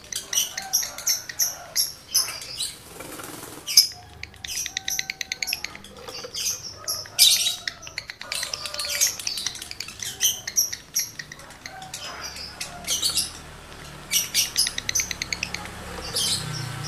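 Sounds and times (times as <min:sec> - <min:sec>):
lovebird chatter: 0:00.0 - 0:16.8.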